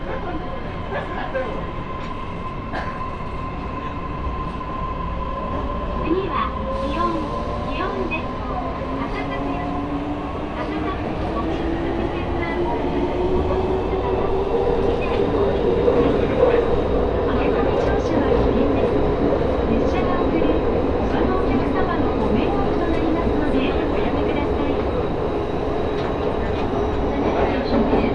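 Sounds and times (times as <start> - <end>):
train ride rumble from Saga to Hakata: 0.0 - 28.1.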